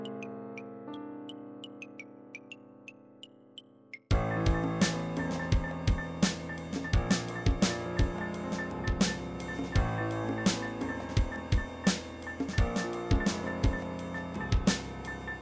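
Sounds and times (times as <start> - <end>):
trip hop MIDI beat with morse code: 4.0 - 15.4.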